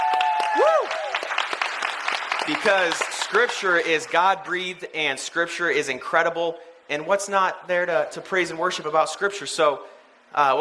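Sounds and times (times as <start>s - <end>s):
audience clapping at a youth church gathering: 0.0s - 3.9s
speech: 2.5s - 10.5s.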